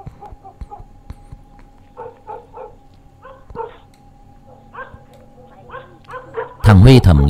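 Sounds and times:
low steady hum: 0.0s - 7.2s
dog barking on the street at night: 0.2s - 0.9s, 2.0s - 3.9s, 4.5s - 6.7s
speech: 6.7s - 7.2s.

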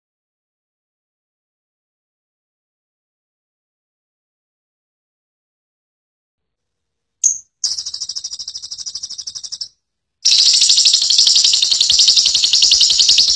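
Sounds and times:
lovebird long chattering call: 7.2s - 9.7s, 10.3s - 13.3s.

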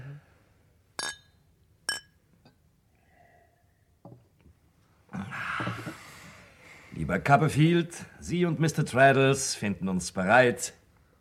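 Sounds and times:
glasses clinking in a toast at a farewell evening: 1.0s - 2.6s
speech: 7.0s - 10.8s.

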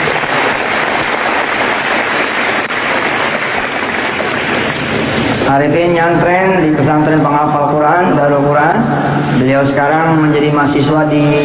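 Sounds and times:
crowd applauding: 0.0s - 5.0s
speech: 5.6s - 11.4s.

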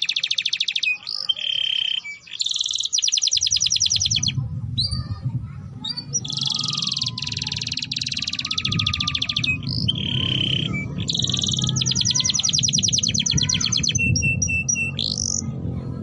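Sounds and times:
Belgian canary singing in fast trills: 0.0s - 5.2s, 5.8s - 15.5s.

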